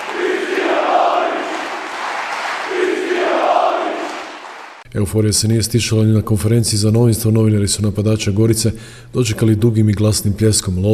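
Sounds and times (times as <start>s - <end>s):
football supporters chanting and cheering in a city garden: 0.0s - 4.8s
speech: 5.0s - 10.9s.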